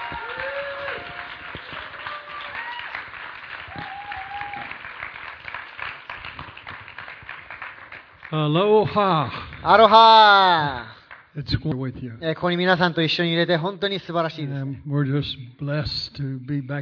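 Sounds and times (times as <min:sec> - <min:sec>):
audience applause welcoming a speaker: 0:00.0 - 0:11.2
speech: 0:08.3 - 0:16.8.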